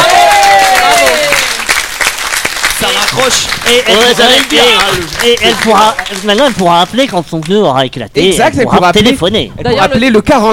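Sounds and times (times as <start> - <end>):
group applauding: 0.0 - 7.8
speech: 3.2 - 10.5.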